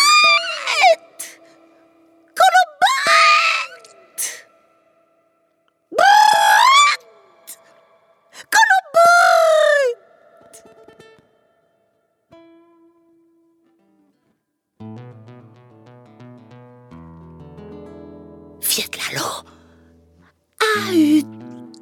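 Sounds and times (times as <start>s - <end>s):
voice imitating a shrill strident cry: 0.0s - 1.5s, 2.4s - 4.5s, 6.0s - 7.8s, 8.5s - 10.7s, 20.6s - 21.3s.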